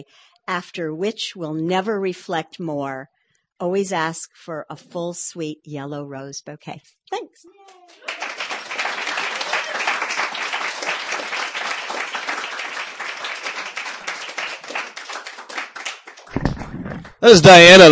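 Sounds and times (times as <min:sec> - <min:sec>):
speech: 0:00.0 - 0:08.0, 0:17.2 - 0:17.8
audience applause at a poetry reading: 0:07.8 - 0:16.4
low thump: 0:16.3 - 0:17.2.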